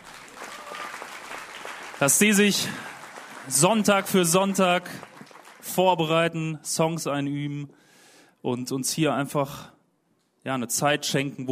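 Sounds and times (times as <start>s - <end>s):
audience applause: 0.0s - 6.0s
speech: 2.0s - 2.9s, 3.5s - 5.1s, 5.7s - 7.8s, 8.4s - 9.8s, 10.4s - 11.4s.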